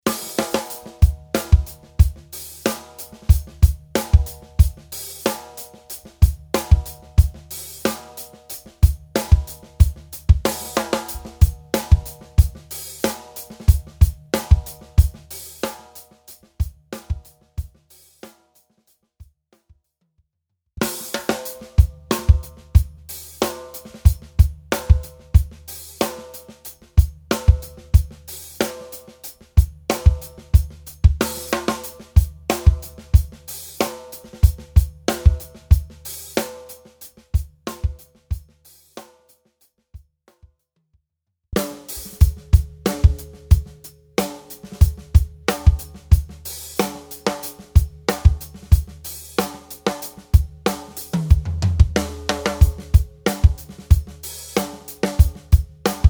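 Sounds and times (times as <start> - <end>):
Taye 7x13 StudioMaple StudioBirch tom drum: 0.0 - 18.2, 20.8 - 38.9, 41.6 - 56.0.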